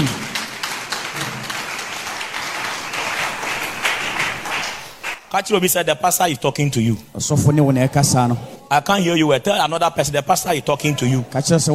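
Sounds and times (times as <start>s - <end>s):
audience clapping: 0.0s - 5.4s
speech: 5.3s - 11.7s.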